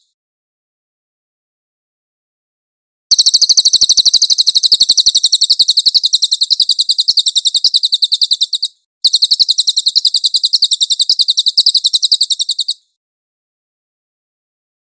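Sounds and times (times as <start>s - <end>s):
cililin bird singing shrill trill: 3.1s - 13.0s.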